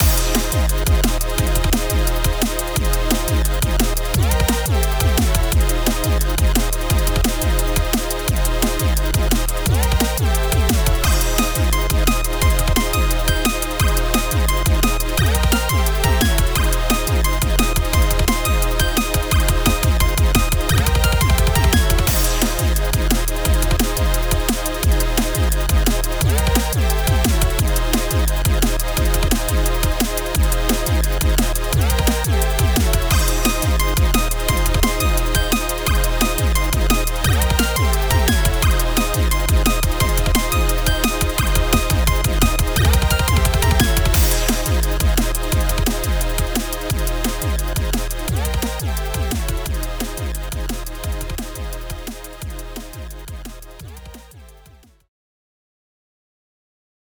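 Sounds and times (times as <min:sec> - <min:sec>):
ambient jungle beat: 0:00.0 - 0:54.8.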